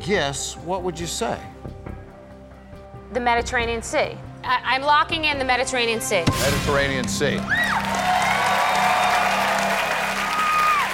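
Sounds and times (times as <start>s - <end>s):
speech: 0.0s - 1.6s, 3.1s - 8.0s
studio audience cheering: 7.0s - 10.9s.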